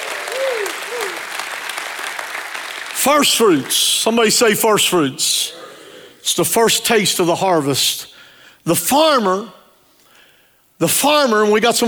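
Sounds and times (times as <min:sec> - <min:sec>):
voiced shouts of praise: 0:00.0 - 0:01.4
crowd applause: 0:00.0 - 0:03.7
speech: 0:03.0 - 0:05.6, 0:06.2 - 0:09.6, 0:10.8 - 0:11.8.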